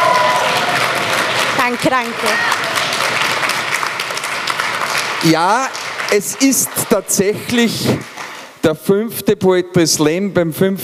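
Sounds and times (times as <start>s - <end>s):
poetry slam audience applause at a human rights symposium: 0.0s - 8.6s
speech: 1.7s - 2.7s, 5.2s - 10.8s.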